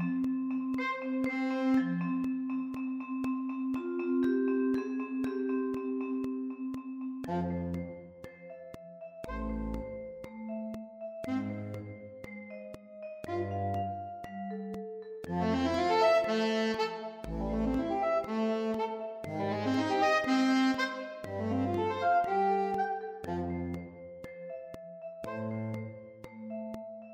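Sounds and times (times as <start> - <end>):
vibraphone: 0.0 - 27.1
saxophone ensemble: 1.0 - 2.0, 15.3 - 24.0.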